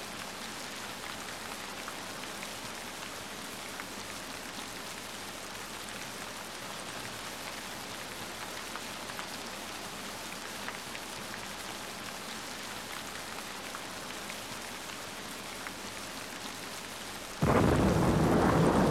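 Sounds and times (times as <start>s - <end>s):
rain: 0.0s - 18.8s
thunder: 17.4s - 18.8s.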